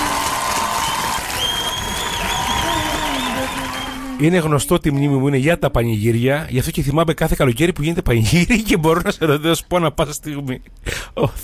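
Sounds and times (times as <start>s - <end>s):
applause: 0.0s - 4.5s
speech: 4.2s - 11.4s.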